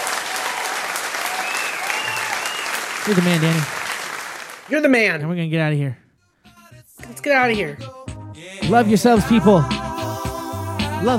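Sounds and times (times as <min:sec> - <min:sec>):
audience applause at the close of a live DJ show: 0:00.0 - 0:04.7
speech: 0:03.1 - 0:03.8, 0:04.7 - 0:06.0, 0:07.2 - 0:08.0, 0:08.7 - 0:09.8, 0:11.0 - 0:11.1.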